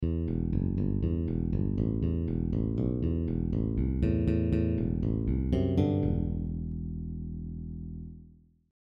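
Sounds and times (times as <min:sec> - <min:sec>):
bass exercise: 0:00.0 - 0:08.7.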